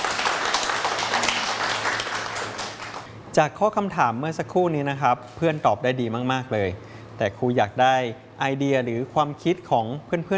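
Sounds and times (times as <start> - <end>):
classroom group of people clapping: 0.0 - 3.1
speech: 3.4 - 10.3.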